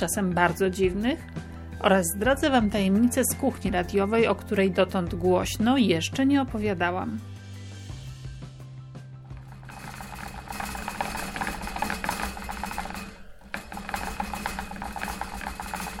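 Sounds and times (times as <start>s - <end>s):
speech: 0.0s - 7.3s
hamster running on a wheel: 9.3s - 15.9s.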